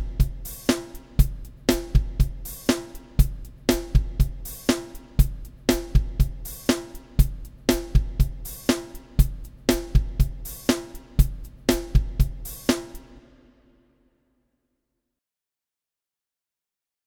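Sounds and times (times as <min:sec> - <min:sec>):
music beat: 0:00.0 - 0:13.4.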